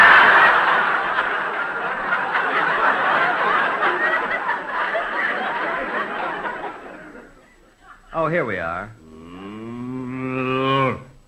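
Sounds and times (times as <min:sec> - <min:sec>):
laughter: 0:00.0 - 0:08.3
cow mooing: 0:09.0 - 0:11.2.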